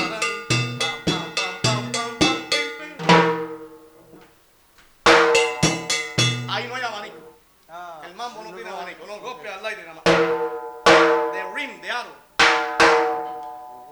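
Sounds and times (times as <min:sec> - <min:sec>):
timpani playing different rhythmic movements: 0:00.0 - 0:04.2, 0:05.1 - 0:07.3, 0:10.1 - 0:13.9.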